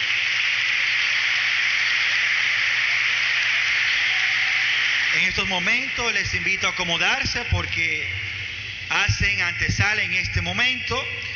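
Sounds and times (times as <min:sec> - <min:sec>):
crowd applause: 0:00.0 - 0:09.0
speech: 0:05.2 - 0:08.2, 0:08.9 - 0:11.3.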